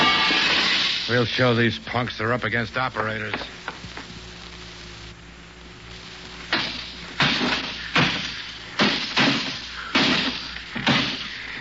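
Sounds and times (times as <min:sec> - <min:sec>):
window panes being smashed out: 0:00.0 - 0:01.1, 0:06.5 - 0:11.4
speech: 0:01.1 - 0:03.6.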